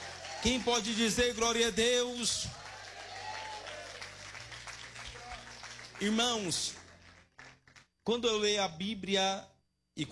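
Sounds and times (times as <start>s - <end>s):
audience clapping: 0.0s - 7.9s
speech: 0.4s - 2.6s, 6.0s - 6.8s, 8.0s - 10.1s.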